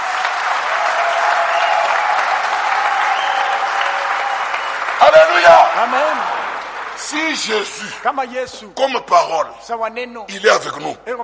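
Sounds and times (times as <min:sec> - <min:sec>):
church congregation applauding during a French-language worship service: 0:00.0 - 0:08.2
speech: 0:05.1 - 0:06.4, 0:07.1 - 0:11.2.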